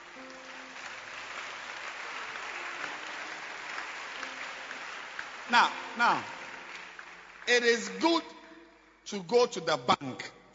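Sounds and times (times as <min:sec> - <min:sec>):
audience hand clapping: 0:00.0 - 0:08.2
speech: 0:05.5 - 0:06.4, 0:07.5 - 0:08.3, 0:09.1 - 0:10.5.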